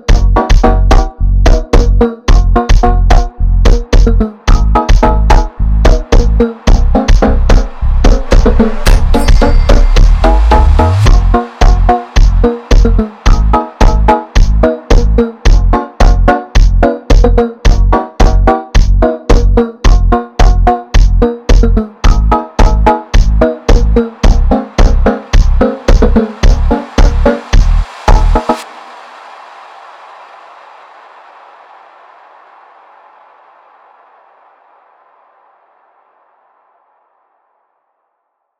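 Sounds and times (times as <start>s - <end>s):
slowed funk instrumental: 0.0s - 28.4s.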